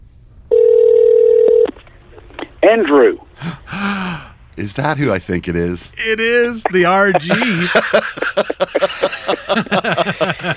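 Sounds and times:
telephone ringing tone: 0.5s - 1.7s
speech: 2.6s - 10.0s
laughter: 6.7s - 10.5s.

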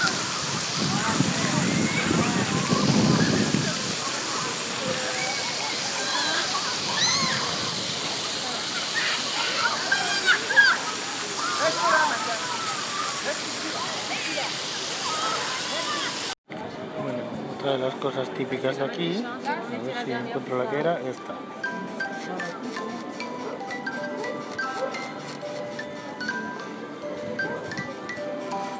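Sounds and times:
water fountains running: 0.0s - 16.4s, 21.6s - 28.7s
children shrieking: 1.3s - 16.3s
speech: 17.8s - 21.6s.

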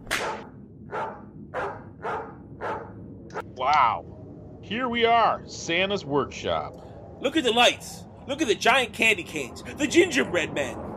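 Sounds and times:
steady low rumble: 0.0s - 10.9s
sled dogs barking: 0.2s - 3.0s
speech: 3.6s - 10.8s.

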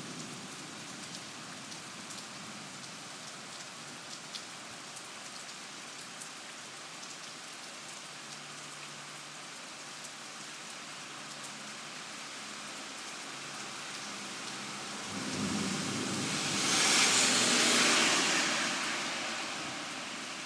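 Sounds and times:
thunderstorm at midnight: 15.0s - 20.2s.

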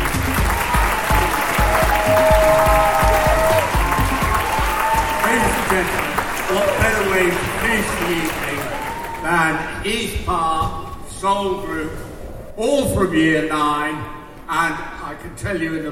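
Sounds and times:
audience applause: 0.0s - 9.6s
speech: 5.7s - 8.4s, 9.2s - 15.9s.

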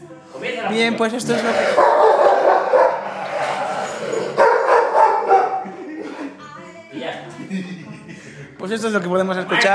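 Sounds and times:
speech: 0.4s - 2.8s, 8.7s - 9.7s
dog barking: 1.8s - 3.0s, 4.4s - 5.6s.

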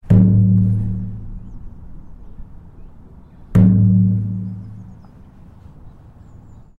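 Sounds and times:
bronze draped seated woman sculpture bonging: 0.0s - 5.4s.

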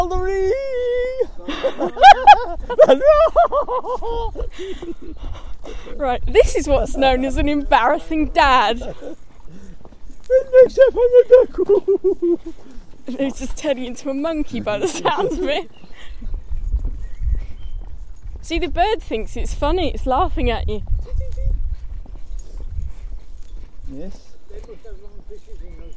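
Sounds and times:
people discussing fruit: 0.0s - 3.4s, 5.9s - 9.2s, 10.3s - 11.9s, 13.1s - 15.7s, 18.4s - 21.5s, 23.9s - 25.9s
laughter: 1.0s - 5.3s, 8.6s - 9.3s, 10.2s - 12.6s, 14.6s - 15.7s
birdsong: 4.0s - 6.0s, 11.2s - 18.3s, 20.8s - 25.9s.

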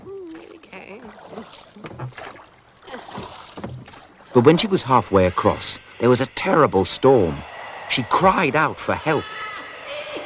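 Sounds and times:
oars splashing while rowing a small boat: 0.0s - 6.6s
water washing: 0.0s - 10.2s
creaky tonal sound: 4.3s - 10.2s
speech: 4.4s - 9.4s.

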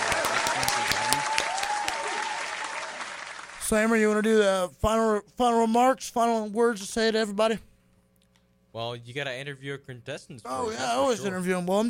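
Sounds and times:
crowd applauding: 0.0s - 3.7s
speech: 3.7s - 7.7s, 8.8s - 11.8s.

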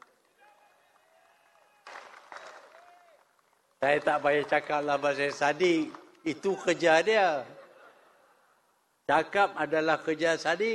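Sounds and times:
audience applause: 0.0s - 5.9s
speech: 3.8s - 7.6s, 9.1s - 10.7s.

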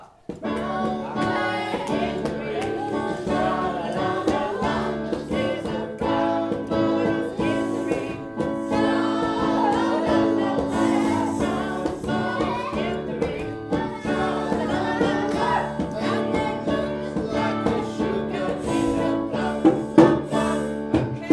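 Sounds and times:
reggae songs: 0.5s - 21.3s.

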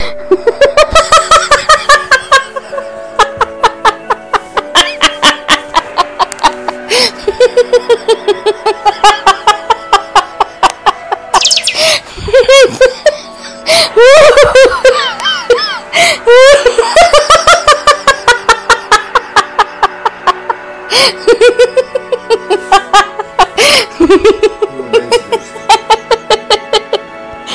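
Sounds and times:
drunken giggles: 0.0s - 27.5s.

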